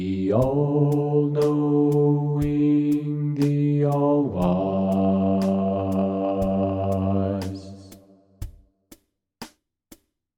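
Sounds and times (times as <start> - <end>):
bass: 0.0 - 8.0.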